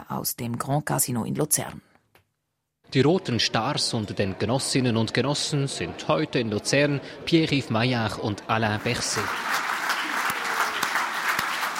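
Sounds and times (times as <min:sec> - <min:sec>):
speech: 0:00.1 - 0:01.9, 0:02.9 - 0:09.7
applause and standing ovation at a Social Democrats' party congress in Lucerne: 0:08.8 - 0:11.7.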